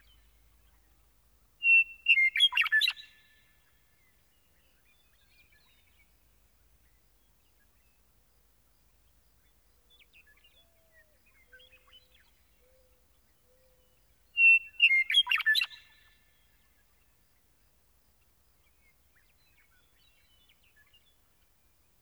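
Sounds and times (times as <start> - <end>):
meadowlark singing: 1.6 - 3.3, 10.1 - 16.1.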